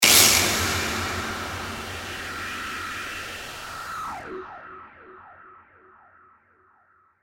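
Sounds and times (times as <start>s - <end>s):
distorted hit with reverb: 0.0s - 5.3s.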